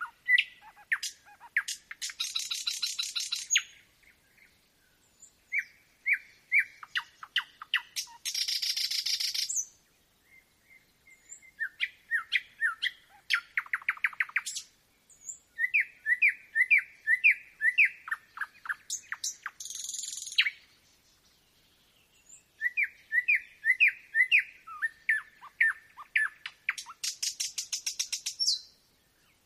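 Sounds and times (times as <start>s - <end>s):
nightingale singing: 0.0s - 29.4s.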